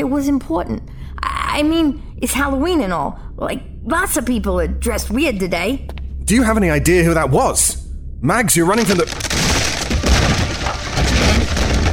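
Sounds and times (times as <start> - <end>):
speech: 0.0 - 1.0, 1.6 - 9.3
door ripped from its hinges: 8.9 - 11.9.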